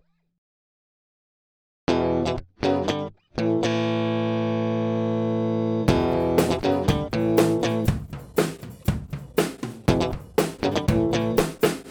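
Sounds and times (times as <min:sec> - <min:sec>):
guitar loop with varied phrasing: 0:01.9 - 0:04.5, 0:05.9 - 0:11.6.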